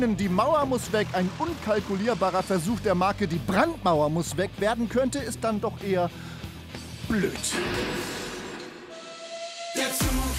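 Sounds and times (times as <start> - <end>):
speech: 0.0 - 6.4, 7.1 - 8.2
steam train blast of steam: 7.5 - 9.5.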